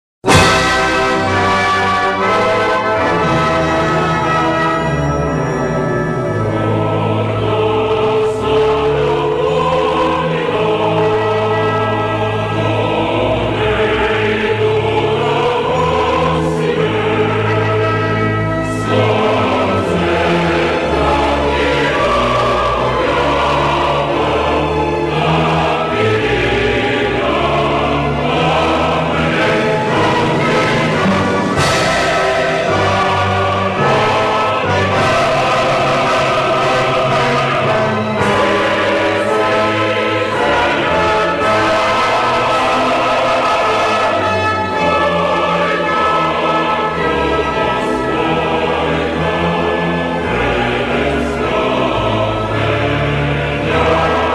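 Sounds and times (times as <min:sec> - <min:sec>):
national anthem music: 0:00.2 - 0:54.3.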